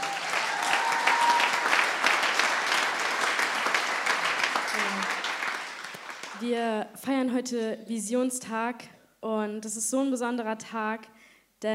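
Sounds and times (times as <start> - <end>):
audience applause: 0.0 - 6.4
speech: 6.4 - 11.7.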